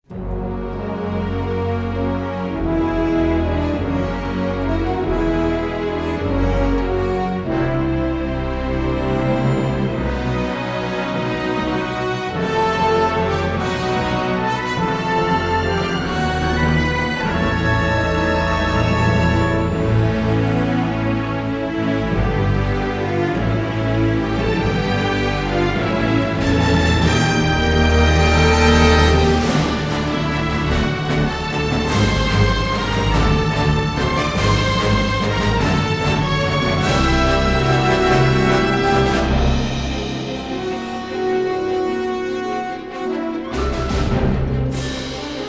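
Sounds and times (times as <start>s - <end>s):
orchestra playing: 0.0s - 45.4s.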